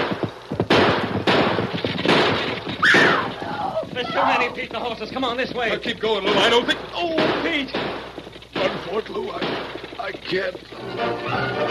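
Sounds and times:
gunshots in a shootout: 0.0s - 3.5s, 6.3s - 10.2s
speech: 4.2s - 8.0s, 8.6s - 11.6s.

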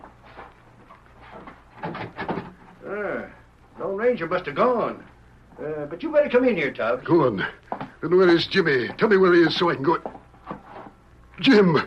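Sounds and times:
door opening: 1.7s - 2.7s
speech: 4.1s - 10.1s, 11.4s - 11.8s.

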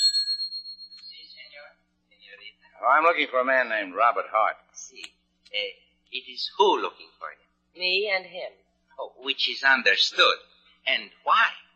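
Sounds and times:
hotel desk bell ringing: 0.0s - 1.4s
speech: 2.8s - 11.6s.

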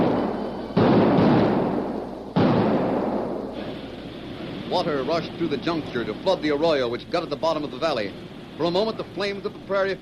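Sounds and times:
blasting powder explosions: 0.0s - 4.7s
speech: 4.7s - 10.0s.

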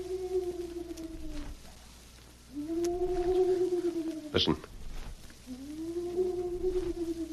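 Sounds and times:
person imitating hoot owl call: 0.0s - 1.6s, 2.5s - 4.6s, 5.5s - 7.3s
speech: 4.4s - 4.8s.

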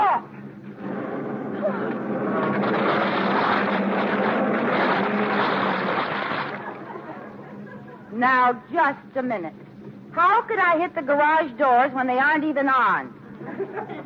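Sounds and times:
car motor running: 0.8s - 6.8s
laughter: 1.5s - 3.0s, 3.6s - 8.2s, 13.3s - 14.0s
speech: 8.2s - 13.2s, 13.8s - 14.0s.

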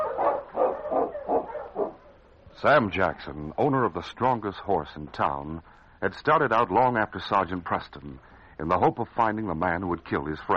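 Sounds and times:
dog barking: 0.0s - 2.2s
speech: 2.6s - 10.5s.

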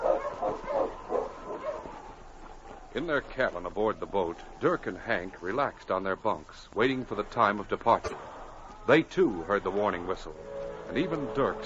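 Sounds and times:
husky sled dog barking: 0.0s - 2.0s
speech: 3.0s - 11.6s.

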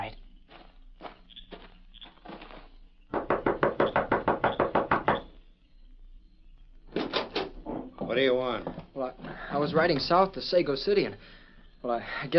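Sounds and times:
knocking on a door: 3.1s - 5.3s
speech: 8.2s - 12.3s.

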